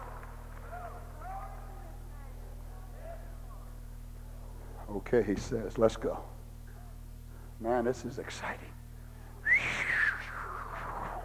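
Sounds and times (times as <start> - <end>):
speech: 4.9 - 6.4, 7.6 - 8.8
man attempting a whistle: 9.4 - 11.2.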